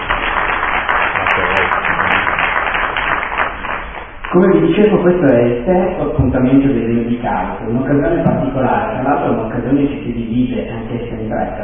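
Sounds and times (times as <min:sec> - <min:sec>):
audience applause: 0:00.0 - 0:04.3
speech: 0:04.4 - 0:11.6.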